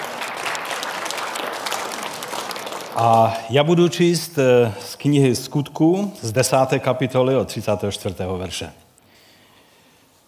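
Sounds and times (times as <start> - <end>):
audience applauding: 0.0 - 3.4
speech: 3.0 - 8.8.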